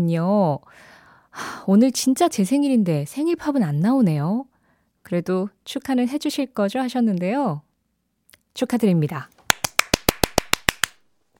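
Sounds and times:
speech: 0.0s - 7.6s, 8.6s - 9.3s
hand clapping: 9.5s - 11.0s.

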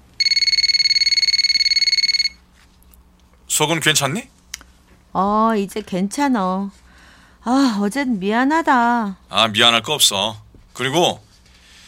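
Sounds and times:
phone ringing with an electronic trill: 0.2s - 2.4s
speech: 3.6s - 4.4s, 5.2s - 6.8s, 7.4s - 11.2s.

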